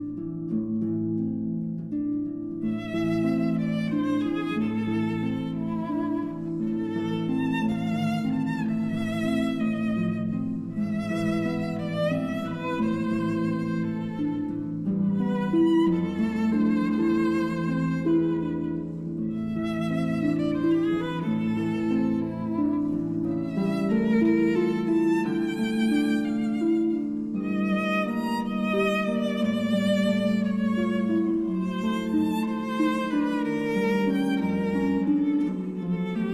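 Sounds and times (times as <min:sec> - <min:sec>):
berceuse for violin and harp: 0:00.0 - 0:36.3.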